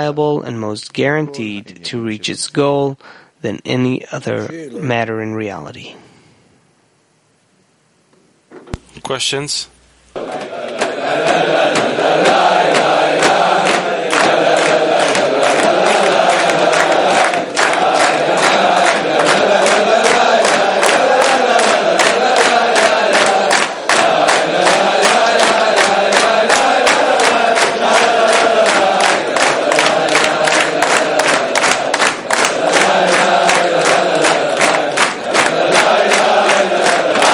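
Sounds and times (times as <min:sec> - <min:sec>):
speech: 0:00.0 - 0:06.1, 0:09.0 - 0:12.8
audience singing and yelling: 0:10.2 - 0:37.3.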